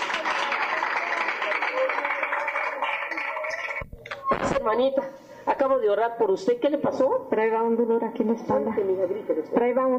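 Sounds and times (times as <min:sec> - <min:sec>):
crowd applauding: 0:00.0 - 0:03.9
speech: 0:04.6 - 0:09.9.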